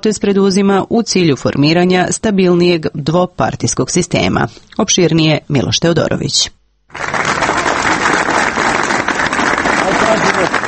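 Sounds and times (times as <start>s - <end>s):
speech: 0.0s - 7.2s
supporters applauding in central Belgrade: 6.9s - 10.6s.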